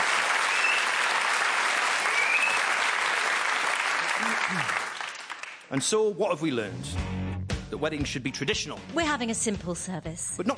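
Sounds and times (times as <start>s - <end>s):
audience applause: 0.0s - 5.8s
speech: 4.3s - 4.9s, 5.7s - 10.5s.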